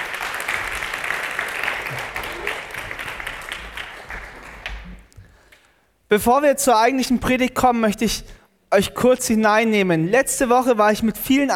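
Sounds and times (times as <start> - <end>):
audience applause: 0.0 - 5.1
speech: 6.1 - 11.5.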